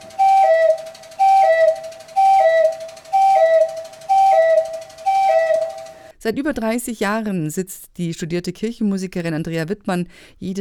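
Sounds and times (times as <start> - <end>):
church organ cuckoo stop: 0.0 - 6.1
speech: 6.3 - 10.5.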